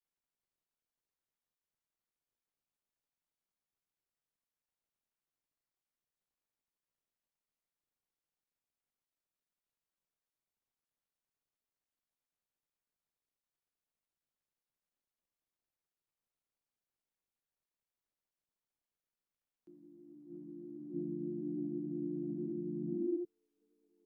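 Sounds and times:
D minor sine synth melody loop: 19.7 - 23.3.

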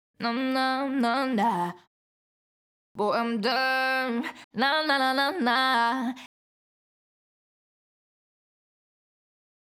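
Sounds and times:
pop vocals a cappella in A-flat major: 0.2 - 1.9, 3.0 - 6.3.

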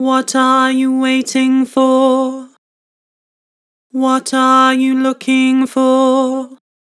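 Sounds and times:
person singing with vibrato: 0.0 - 2.6, 4.0 - 6.6.

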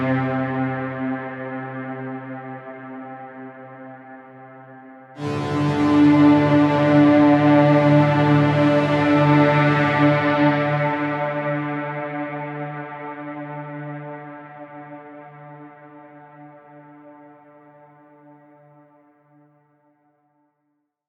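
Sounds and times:
synth pad in E minor: 0.0 - 16.0.

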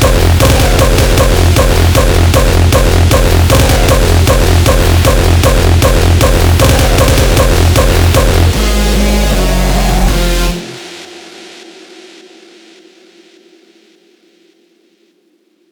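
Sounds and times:
drum kit mix in F minor: 0.0 - 11.1.

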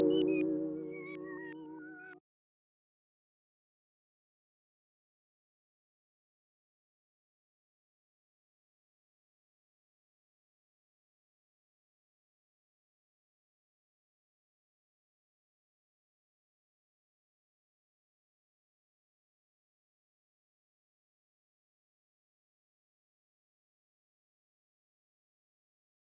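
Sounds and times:
lofi A-sharp minor chord melody at 80 BPM: 0.0 - 1.8.

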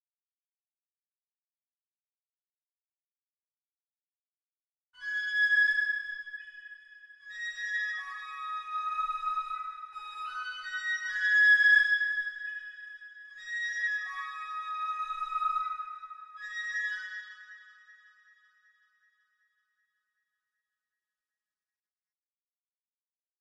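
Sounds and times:
high flute loop in D sharp minor: 5.0 - 18.4.

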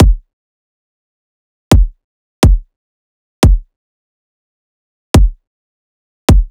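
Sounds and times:
riddim kick drum loop: 0.0 - 0.3, 1.7 - 2.7, 3.4 - 3.7, 5.2 - 5.4, 6.3 - 6.5.

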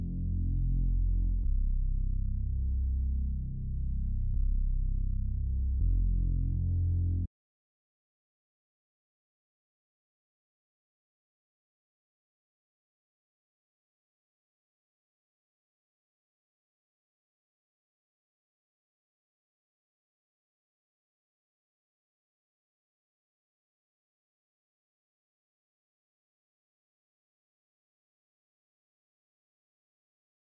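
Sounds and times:
reversed bass stem in C minor: 0.0 - 7.3.

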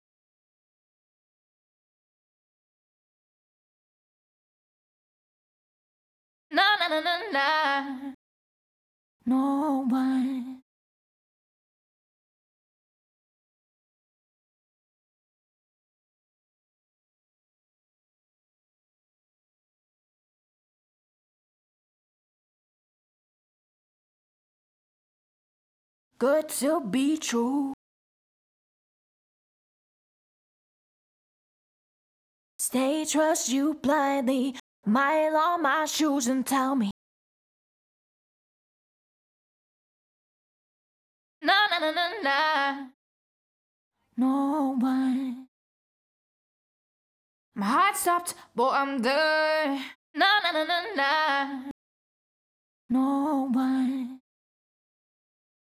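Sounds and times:
pop vocals a cappella in A-flat major: 6.5 - 8.2, 9.2 - 10.6, 26.2 - 27.8, 32.6 - 37.0, 41.4 - 43.0, 44.2 - 45.5, 47.6 - 51.8, 52.9 - 54.2.

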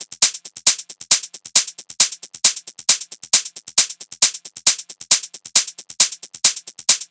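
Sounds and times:
techno hi-hat loop at 135 BPM: 0.0 - 7.0.

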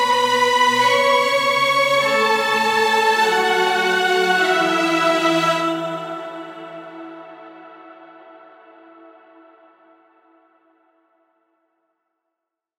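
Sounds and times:
string melody in F sharp minor: 0.0 - 9.1.

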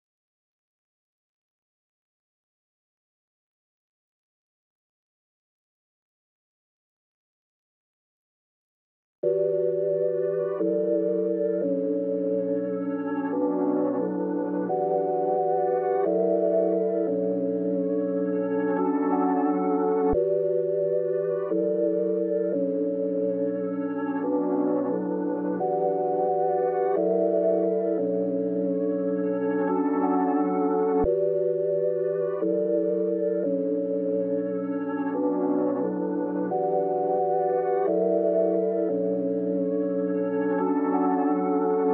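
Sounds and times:
synth pad melody loop in B minor: 9.2 - 41.9.

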